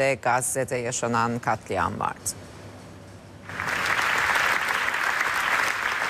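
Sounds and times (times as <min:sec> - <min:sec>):
speech: 0:00.0 - 0:02.5
standing ovation at the Venice Film Festival: 0:03.5 - 0:06.0.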